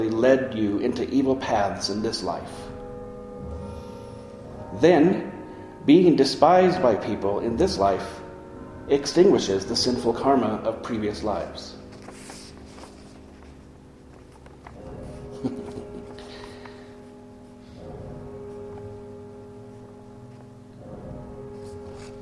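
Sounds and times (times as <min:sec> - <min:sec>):
speech: 0:00.0 - 0:02.8, 0:04.7 - 0:08.2, 0:08.9 - 0:11.8
deep bell tolling: 0:00.0 - 0:22.2.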